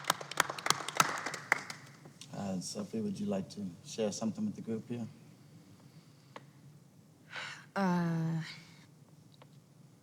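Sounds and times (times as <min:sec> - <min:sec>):
group applause: 0:00.0 - 0:02.0
speech: 0:02.6 - 0:05.2, 0:07.8 - 0:08.6.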